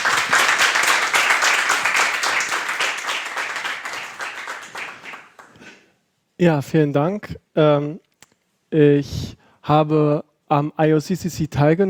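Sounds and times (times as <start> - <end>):
audience applause: 0.0 - 5.6
speech: 6.4 - 8.1, 8.7 - 11.8.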